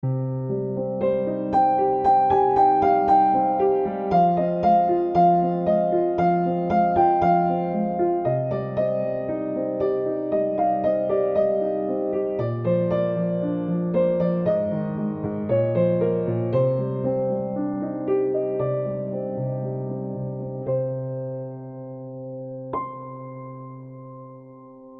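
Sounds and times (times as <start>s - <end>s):
piano: 0.0s - 24.9s.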